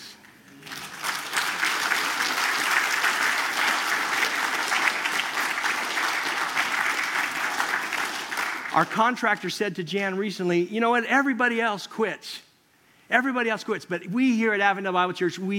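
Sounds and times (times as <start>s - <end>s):
audience applause: 0.5s - 9.0s
speech: 8.8s - 12.5s, 13.1s - 15.5s.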